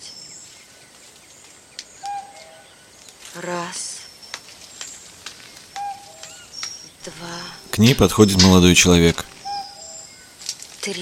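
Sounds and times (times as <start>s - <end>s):
cuckoo calling: 1.9s - 2.9s, 3.6s - 10.4s
speech: 3.4s - 3.9s, 7.0s - 9.3s.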